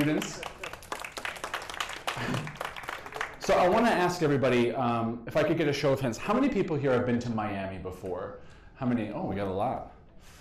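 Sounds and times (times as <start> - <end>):
speech: 0.0 - 0.6, 2.2 - 2.6, 3.5 - 10.4
audience applause: 0.0 - 4.1.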